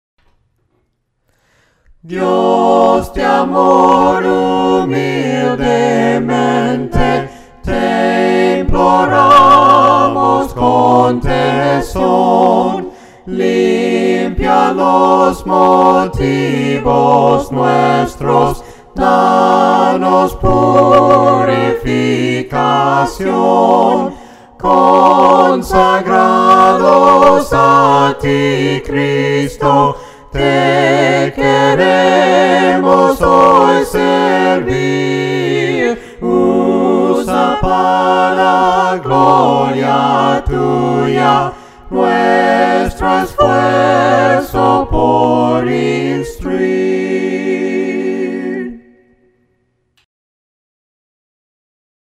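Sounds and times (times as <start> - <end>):
voices singing: 2.0 - 49.3.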